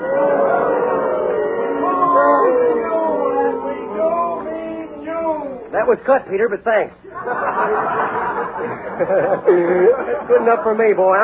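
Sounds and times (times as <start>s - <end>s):
laughter: 0.0s - 5.7s, 7.1s - 11.2s
crowd booing: 0.0s - 5.9s
speech: 5.8s - 11.2s.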